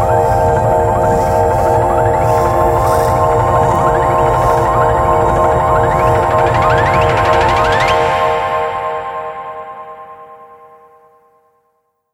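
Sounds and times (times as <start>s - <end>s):
dark strings: 0.0s - 9.4s.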